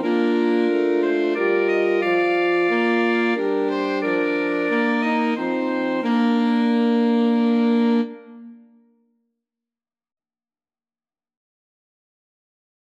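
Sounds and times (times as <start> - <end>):
alto saxophone quartet playing: 0.0 - 8.7.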